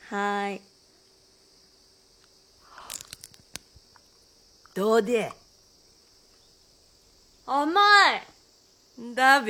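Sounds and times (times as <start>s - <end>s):
speech: 0.1s - 0.7s, 4.8s - 5.4s, 7.5s - 8.4s, 9.0s - 9.4s
raw sea squirt (hoya) being bitten and chewed: 2.7s - 4.1s.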